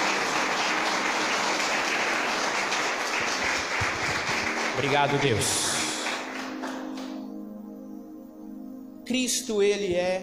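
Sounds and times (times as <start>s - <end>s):
audience applause: 0.0s - 7.2s
speech: 4.8s - 5.7s, 9.1s - 10.2s.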